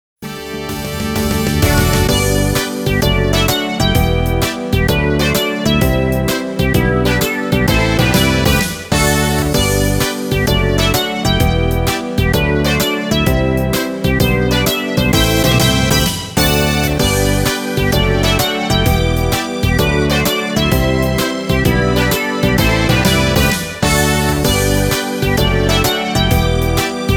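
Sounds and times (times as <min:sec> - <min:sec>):
autumn background music: 0:00.2 - 0:27.1.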